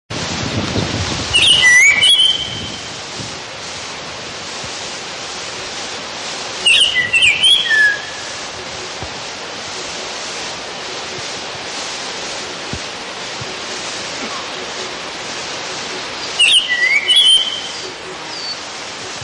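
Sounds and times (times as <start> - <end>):
light hiss: 0.1 - 19.2
black-headed hawfinch whistling: 1.3 - 2.9, 6.6 - 9.1, 15.6 - 18.7.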